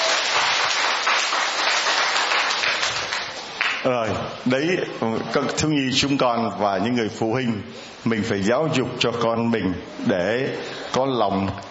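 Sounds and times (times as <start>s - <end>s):
applause: 0.0s - 3.8s
speech: 3.8s - 11.6s.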